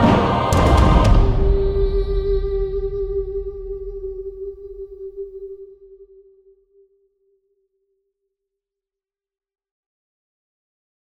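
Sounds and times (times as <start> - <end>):
drums: 0.0 - 5.5.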